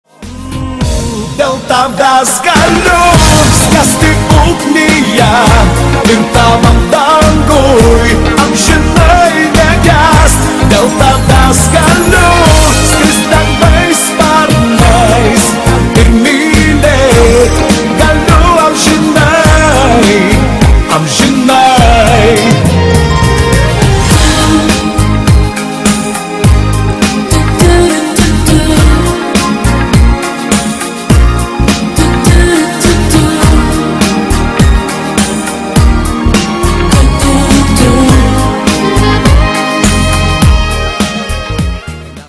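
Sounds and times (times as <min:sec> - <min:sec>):
song: 0:00.1 - 0:42.2.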